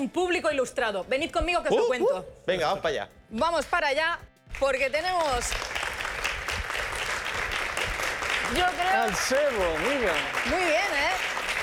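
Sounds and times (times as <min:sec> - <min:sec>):
speech: 0:00.0 - 0:05.8, 0:08.5 - 0:11.3
live crowd audience applause: 0:05.2 - 0:11.6.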